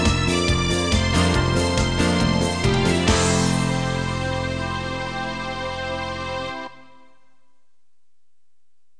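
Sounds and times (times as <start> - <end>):
disco music: 0.0 - 6.7.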